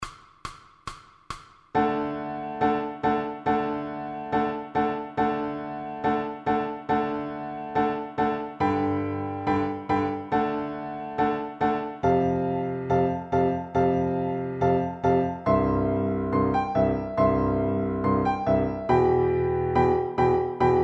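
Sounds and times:
piano accompaniment for violin: 1.7 - 20.8.

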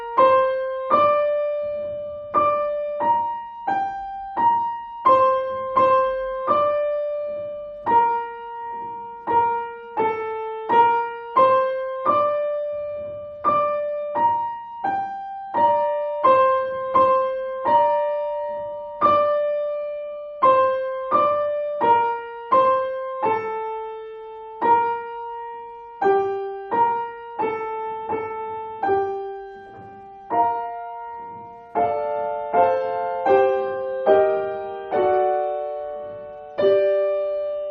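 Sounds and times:
piano duet playing a pavane at exam speed: 0.0 - 37.6.

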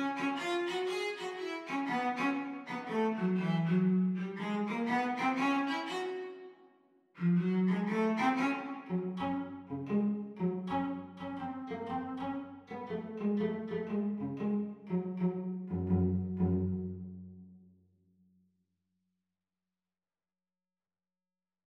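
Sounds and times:
cello duet teacher part at exam speed: 0.0 - 6.5, 7.2 - 17.6.

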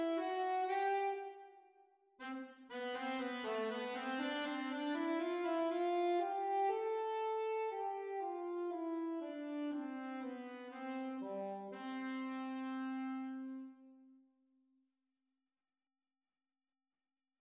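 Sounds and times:
saxophone duet playalong: 0.0 - 14.1.

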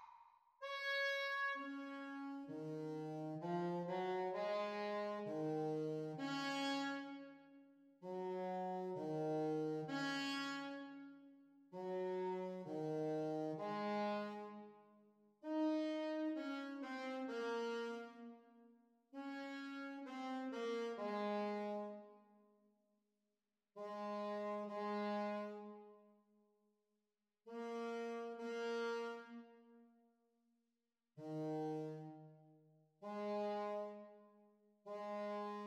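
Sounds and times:
saxophone duet playalong: 0.7 - 14.8, 15.5 - 18.5, 19.1 - 22.2, 23.8 - 25.9, 27.5 - 29.7, 31.2 - 32.4, 33.0 - 34.2, 34.9 - 35.6.

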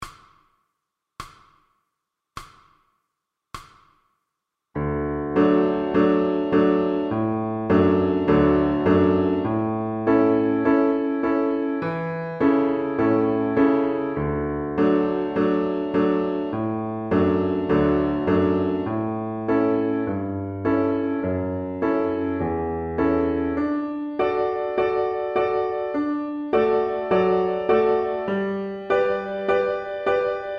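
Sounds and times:
piano accompaniment for violin: 4.8 - 30.5.

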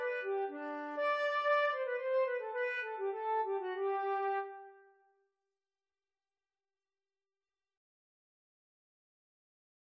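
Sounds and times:
flute duet canon: 0.0 - 4.8.

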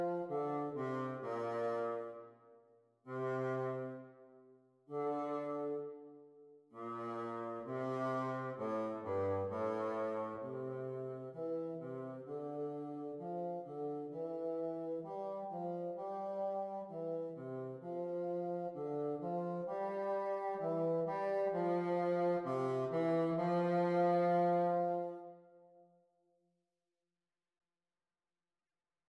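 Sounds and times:
bassoon duet: 0.0 - 2.2, 3.1 - 4.3, 4.9 - 6.1, 6.8 - 25.4.

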